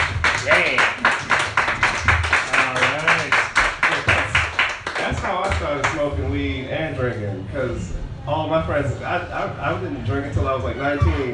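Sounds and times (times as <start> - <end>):
audience clapping for a comedian: 0.0 - 6.1
speech: 7.1 - 11.3.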